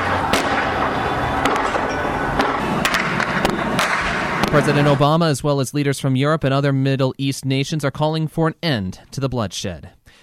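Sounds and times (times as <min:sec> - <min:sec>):
gunshots in city streets: 0:00.0 - 0:05.1
street noise rumble: 0:00.0 - 0:05.4
speech: 0:04.6 - 0:10.2.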